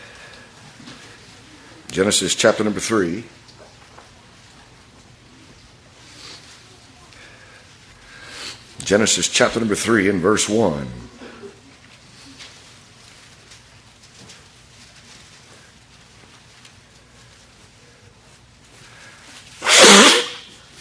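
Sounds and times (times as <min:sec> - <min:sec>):
low hum: 0:00.0 - 0:20.7
speech: 0:01.9 - 0:03.4, 0:08.9 - 0:11.2
nose blowing: 0:19.6 - 0:20.5.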